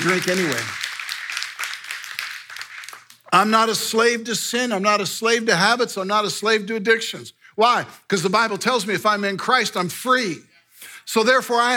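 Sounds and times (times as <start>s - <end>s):
speech: 0.0s - 0.8s, 3.3s - 11.7s
audience clapping: 0.0s - 3.3s.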